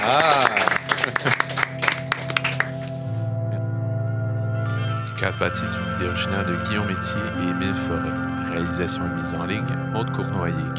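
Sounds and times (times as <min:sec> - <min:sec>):
laughter: 0:00.0 - 0:02.9
audience hand clapping: 0:00.0 - 0:03.2
steady sustained musical tone with low hum: 0:00.0 - 0:10.7
speech: 0:05.2 - 0:10.7.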